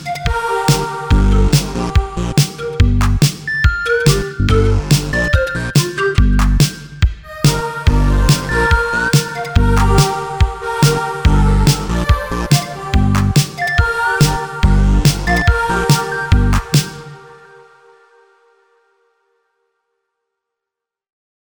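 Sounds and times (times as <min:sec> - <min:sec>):
synthwave music: 0:00.0 - 0:18.8.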